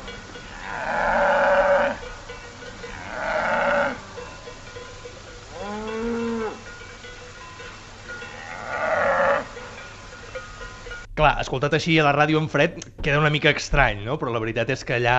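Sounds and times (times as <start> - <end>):
red deer stag rutting bellow: 0.0 - 11.0
cowbells: 0.0 - 12.7
speech: 11.2 - 15.1.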